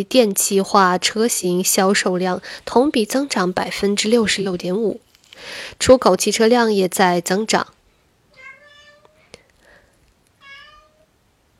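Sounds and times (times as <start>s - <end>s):
speech: 0.0s - 7.8s
cat meowing loudly: 8.3s - 9.4s, 10.4s - 11.1s.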